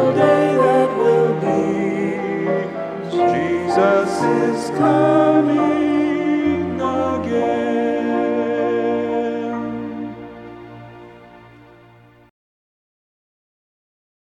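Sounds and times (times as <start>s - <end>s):
hymn: 0.0s - 11.4s.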